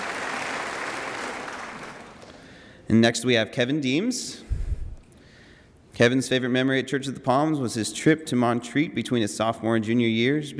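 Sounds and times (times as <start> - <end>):
crowd applause: 0.0 - 2.5
speech: 2.9 - 4.5, 6.0 - 10.5.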